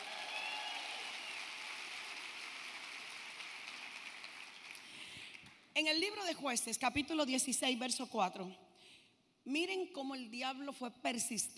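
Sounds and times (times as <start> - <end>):
crowd applauding: 0.0 - 5.1
speech: 5.8 - 8.6, 9.5 - 11.5.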